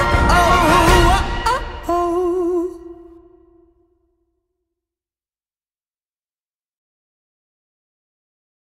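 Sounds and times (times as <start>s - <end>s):
orchestral music: 0.0s - 3.8s.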